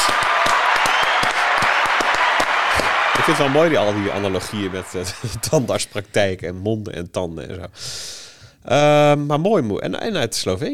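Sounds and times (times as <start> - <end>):
applause: 0.0 - 5.9
laughter: 2.8 - 6.0
speech: 3.3 - 10.7.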